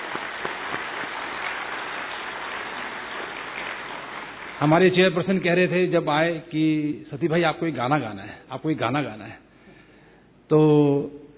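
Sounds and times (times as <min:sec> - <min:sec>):
audience applause at a ceremony after a vote of thanks: 0:00.0 - 0:05.1
speech: 0:04.6 - 0:09.4, 0:10.5 - 0:11.2.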